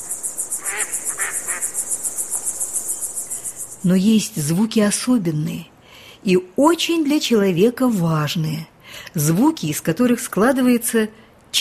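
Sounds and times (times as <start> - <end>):
birds giving harsh nasal calls: 0.0 - 3.9
high-pitched pulsing chirr of insects: 0.0 - 4.7
speech: 3.8 - 11.5.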